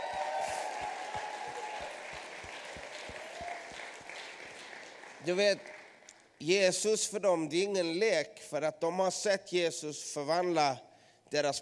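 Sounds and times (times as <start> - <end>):
audience applause: 0.0 - 6.1
speech: 5.2 - 5.7, 6.4 - 11.6.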